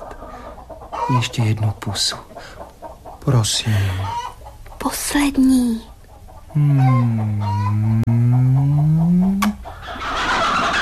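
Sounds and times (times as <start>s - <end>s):
hens clucking: 0.0s - 10.8s
speech: 1.1s - 2.6s, 3.2s - 5.9s, 6.6s - 8.2s.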